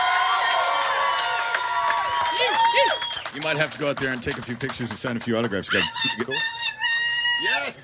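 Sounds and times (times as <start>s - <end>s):
crowd cheering and applauding: 0.0s - 6.6s
speech: 3.4s - 6.7s.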